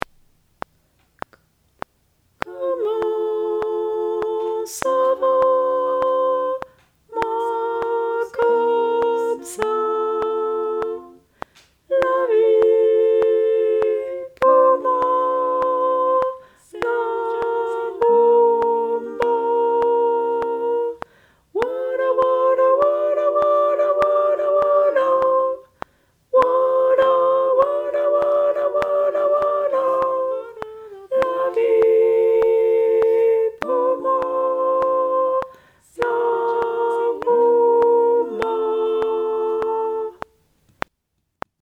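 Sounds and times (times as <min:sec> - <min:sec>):
tenor singing: 0:02.4 - 0:40.4.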